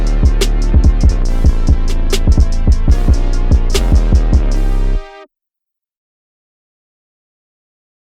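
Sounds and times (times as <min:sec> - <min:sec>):
instrumental music: 0:00.0 - 0:05.3.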